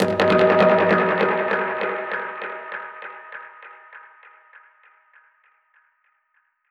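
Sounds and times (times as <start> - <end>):
dub percussion hit: 0.0 - 2.3.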